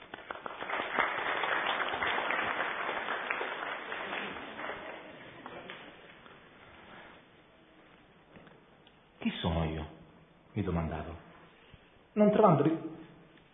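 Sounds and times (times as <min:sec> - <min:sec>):
audience applause: 0:00.0 - 0:05.9
speech: 0:10.6 - 0:11.2, 0:12.2 - 0:12.8.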